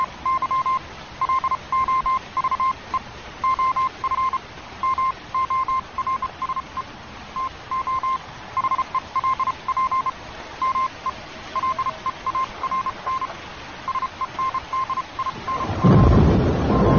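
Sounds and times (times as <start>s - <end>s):
rain: 0.0s - 16.9s
storm: 14.4s - 16.9s.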